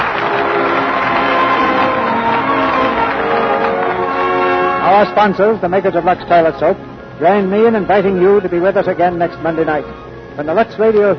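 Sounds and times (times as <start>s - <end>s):
studio audience applause: 0.0s - 5.2s
faint crowd murmur: 0.0s - 11.1s
speech: 5.0s - 11.1s.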